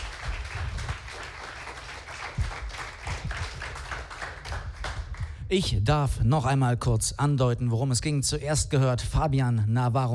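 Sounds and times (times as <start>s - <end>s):
audience applauding: 0.0s - 5.4s
speech: 5.5s - 10.1s.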